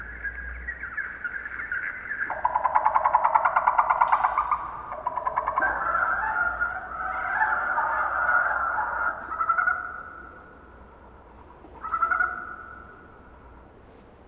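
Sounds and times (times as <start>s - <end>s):
animal breeding call: 0.9s - 10.3s.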